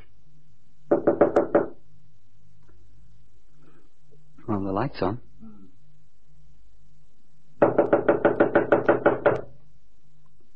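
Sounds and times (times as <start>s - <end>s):
firm knocking on a wooden door: 0.9s - 1.8s, 7.6s - 9.5s
speech: 4.7s - 5.3s.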